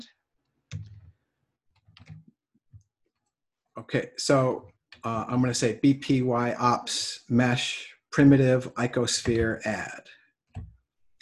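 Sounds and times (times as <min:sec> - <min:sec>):
computer mouse right-click: 0:00.7 - 0:01.1, 0:01.8 - 0:02.9
speech: 0:03.9 - 0:10.7.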